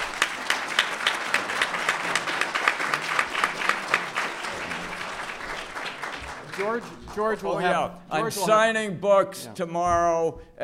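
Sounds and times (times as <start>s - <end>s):
audience applause: 0.0s - 8.0s
speech: 6.6s - 10.6s.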